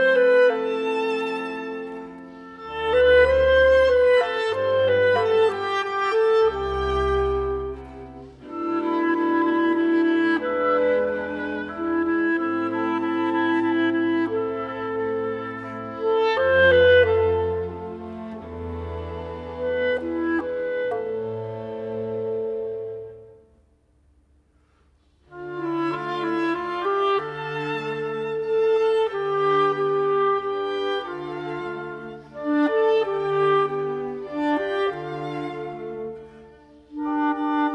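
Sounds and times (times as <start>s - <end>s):
instrumental melody: 0.0s - 23.8s, 25.1s - 37.7s.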